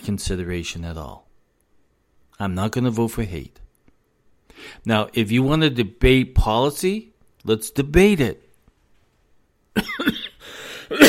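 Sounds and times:
speech: 0:00.0 - 0:01.2, 0:02.4 - 0:03.6, 0:04.6 - 0:08.4, 0:09.8 - 0:10.1
raspy breath: 0:04.5 - 0:04.8, 0:10.4 - 0:11.0
person coughing after sunflower seeds went down the wrong pipe: 0:09.7 - 0:11.0
throat clearing: 0:09.8 - 0:11.0.

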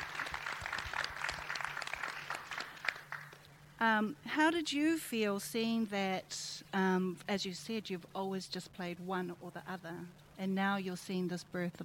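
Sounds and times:
audience applause for the cast: 0:00.0 - 0:03.4
speech: 0:03.8 - 0:11.8.

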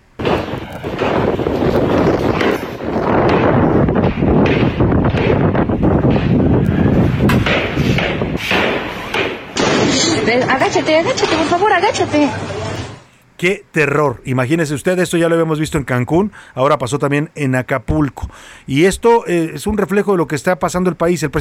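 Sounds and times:
gunfire on Playa Manzanillo beach: 0:00.2 - 0:06.4, 0:07.2 - 0:10.5
speech: 0:10.3 - 0:12.6, 0:13.4 - 0:21.3.

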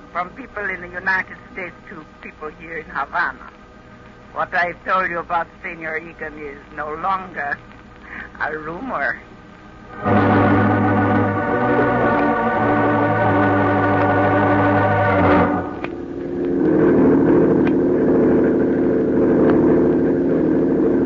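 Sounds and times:
speech: 0:00.2 - 0:03.6, 0:04.3 - 0:07.7, 0:08.4 - 0:09.3, 0:09.9 - 0:10.2
speedboat engine droning: 0:09.9 - 0:21.0.

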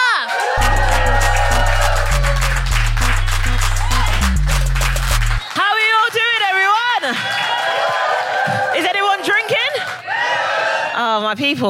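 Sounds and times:
crowd cheering and whooping: 0:00.0 - 0:05.5, 0:06.9 - 0:11.0
applause: 0:00.0 - 0:10.0
thumping bass-heavy music: 0:00.6 - 0:05.4
speech: 0:11.3 - 0:11.6.

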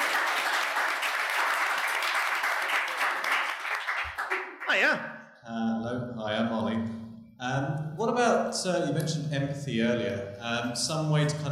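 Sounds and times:
audience applause: 0:00.0 - 0:05.0
speech: 0:04.7 - 0:11.5.

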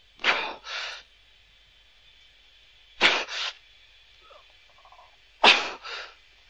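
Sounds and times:
steady high hum: 0:00.0 - 0:06.4
pilot's strained breathing under G-force: 0:00.2 - 0:01.2, 0:03.0 - 0:03.6, 0:05.7 - 0:06.3.

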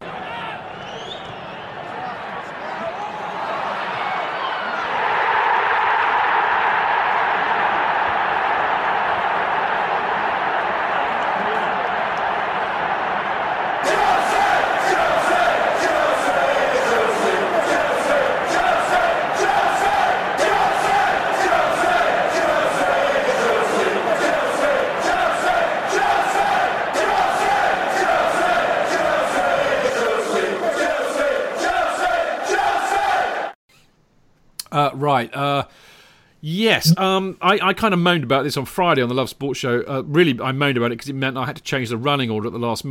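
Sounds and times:
crowd applause and cheering: 0:00.0 - 0:33.6
speech: 0:35.1 - 0:35.6, 0:36.4 - 0:42.8.

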